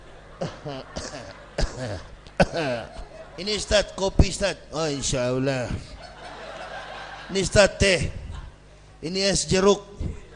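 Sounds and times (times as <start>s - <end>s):
laughter: 0.0s - 8.7s
person imitating staged coughs and throat clearing: 0.4s - 3.1s
speech: 0.4s - 6.0s, 7.3s - 8.2s, 9.0s - 10.1s.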